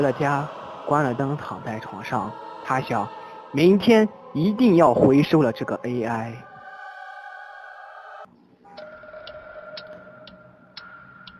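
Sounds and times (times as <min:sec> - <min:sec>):
speech: 0:00.0 - 0:06.5
clock ticking: 0:08.7 - 0:11.3.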